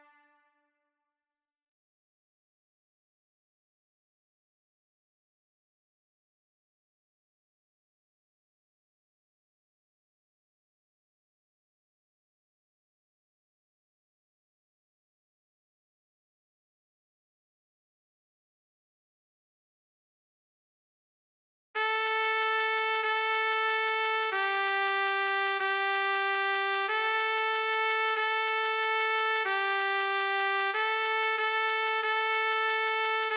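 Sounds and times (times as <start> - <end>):
B-flat cornet playing a sea shanty: 21.8 - 33.3.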